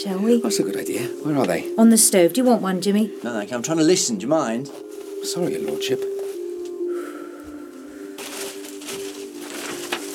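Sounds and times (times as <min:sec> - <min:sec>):
speech: 0:00.0 - 0:06.1
newspaper page turning: 0:08.2 - 0:10.1.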